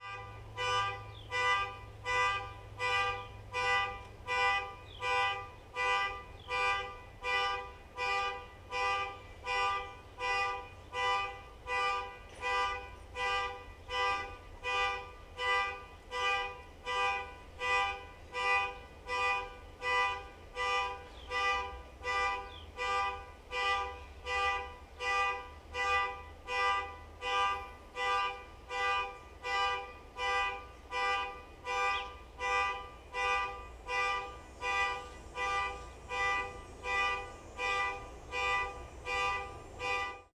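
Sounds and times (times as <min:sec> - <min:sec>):
car alarm in Toronto: 0:00.0 - 0:40.3.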